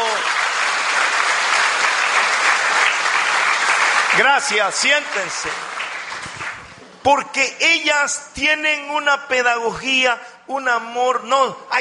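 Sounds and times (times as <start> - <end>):
audience applause: 0.0 - 6.8
speech: 4.2 - 5.8, 7.0 - 11.8.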